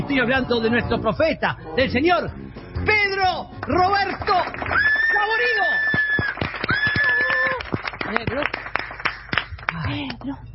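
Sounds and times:
speech: 0.1 - 6.0, 8.1 - 8.7, 9.7 - 10.5
hands clapping: 3.5 - 10.4.

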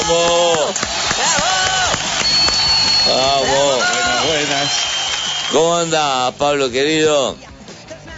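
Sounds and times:
audience applause: 0.0 - 6.3
speech: 5.5 - 7.5.

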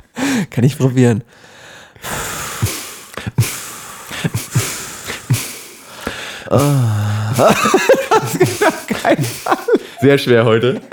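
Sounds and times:
speech: 0.4 - 2.2, 6.5 - 10.9
voice imitating a beat with rhythmic breathy snorts: 2.1 - 9.8
laughter: 6.6 - 10.9.

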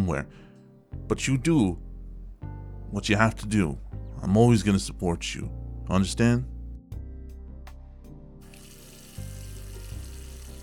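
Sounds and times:
speech: 0.1 - 6.5
water running from a faucet into a sink: 8.4 - 10.6.

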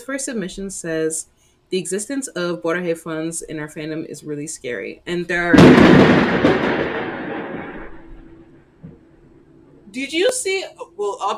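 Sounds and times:
speech: 0.0 - 7.1, 10.0 - 11.3
thunder from a nearby lightning strike: 5.5 - 9.0.

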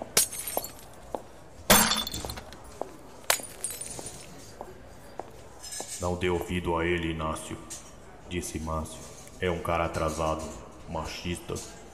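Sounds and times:
broken glass tinkling: 0.0 - 1.0, 1.7 - 2.6, 3.3 - 4.4
glass bottles kicked and shattering: 0.0 - 1.0, 1.7 - 2.7, 3.3 - 4.4
speech: 6.0 - 11.8.

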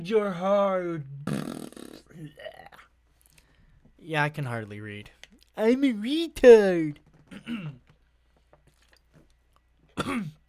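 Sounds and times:
speech: 0.0 - 1.4, 2.2 - 2.6, 4.0 - 7.8, 10.0 - 10.4
person choking on water: 1.2 - 2.9, 10.0 - 10.4
person coughing: 7.3 - 7.8, 10.0 - 10.4.

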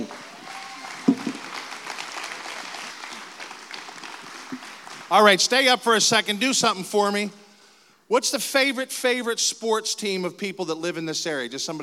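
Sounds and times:
church congregation applause welcoming a guest speaker: 0.0 - 6.4
speech: 5.1 - 7.4, 8.1 - 11.8.

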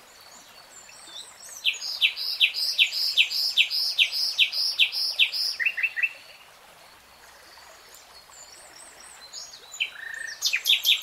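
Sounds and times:
nightingale song with chirps and trill: 1.1 - 6.2, 9.6 - 11.0.

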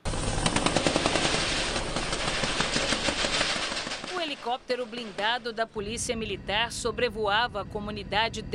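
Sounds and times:
sustained gunfire during a shootout: 0.1 - 4.6
speech: 4.4 - 8.5.

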